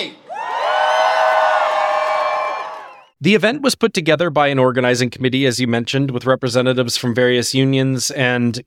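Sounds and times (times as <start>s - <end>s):
speech: 0.0s - 0.2s, 3.2s - 8.6s
crowd at a rally cheering and whooping: 0.3s - 3.2s.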